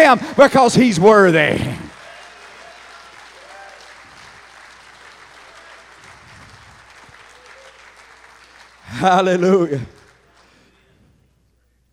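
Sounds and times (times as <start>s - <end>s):
speech: 0.1s - 1.8s, 8.9s - 10.0s
audience clapping hands: 0.6s - 10.9s.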